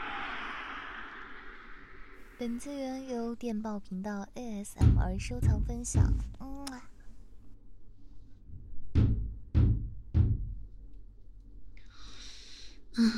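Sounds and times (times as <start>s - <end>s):
speech: 2.4s - 6.4s
knocking on a door: 4.8s - 6.3s, 8.6s - 10.7s.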